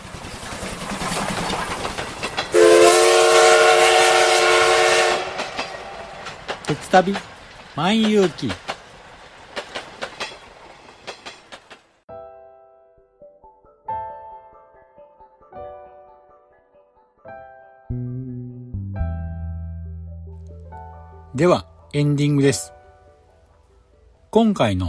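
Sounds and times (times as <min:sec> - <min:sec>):
Kintetsu Hinotori limited express train running: 0:00.0 - 0:12.0
speech: 0:06.9 - 0:08.6, 0:21.4 - 0:22.8, 0:24.4 - 0:24.8.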